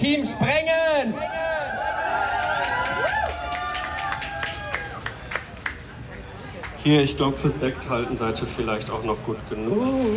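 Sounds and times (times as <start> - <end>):
speech: 0.1 - 1.4, 6.8 - 10.1
audience applauding: 1.4 - 5.8.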